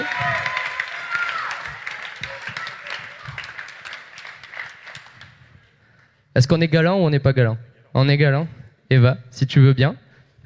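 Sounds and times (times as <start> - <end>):
crowd applause at a pitch competition event: 0.0 - 5.5
speech: 6.4 - 10.4.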